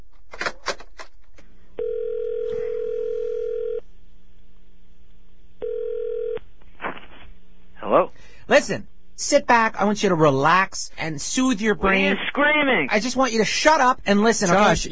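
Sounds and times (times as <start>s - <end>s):
telephone buzzing ring tone: 1.8s - 3.8s, 5.6s - 6.4s
speech: 7.9s - 14.8s.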